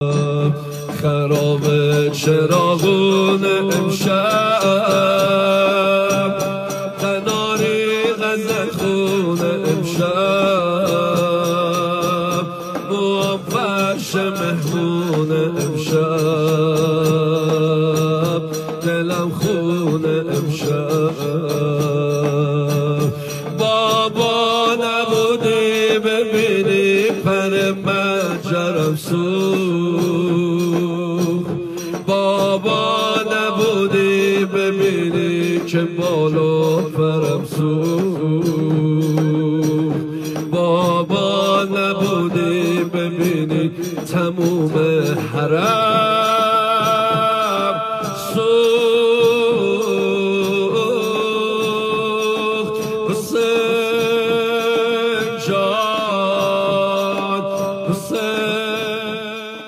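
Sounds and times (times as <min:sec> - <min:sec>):
devotional singing: 0:00.0 - 0:59.6.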